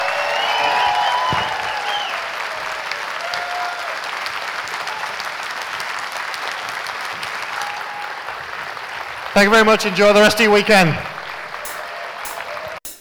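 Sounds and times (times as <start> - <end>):
faint whoops: 0.0 - 4.1, 7.5 - 8.2
audience applause: 0.0 - 12.8
speech: 9.4 - 11.1.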